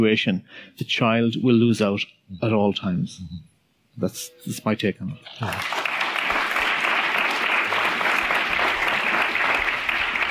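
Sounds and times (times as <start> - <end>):
speech: 0.0 - 5.8
audience applause after a panel discussion: 5.3 - 10.2.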